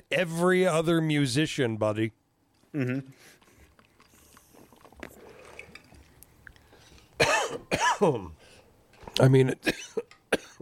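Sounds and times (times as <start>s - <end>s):
speech: 0.1s - 3.4s, 7.2s - 8.4s, 9.2s - 10.5s
person coughing and choking: 7.2s - 8.4s, 9.6s - 10.5s.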